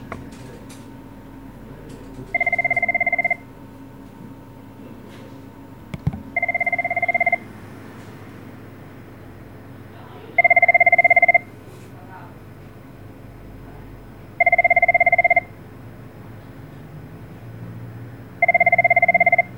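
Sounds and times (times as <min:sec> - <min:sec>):
bank phone: 0:02.1 - 0:03.4, 0:05.9 - 0:07.5, 0:10.4 - 0:11.5, 0:14.4 - 0:15.5, 0:18.4 - 0:19.5.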